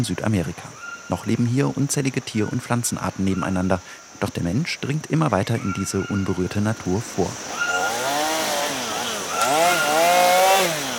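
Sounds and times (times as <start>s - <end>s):
speech: 0.0s - 7.7s
chainsaw clearing rainforest trees: 7.4s - 10.9s.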